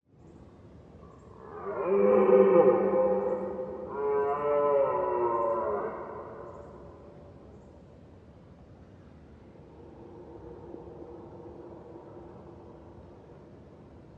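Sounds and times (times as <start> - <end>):
red deer roaring: 1.4 - 6.7.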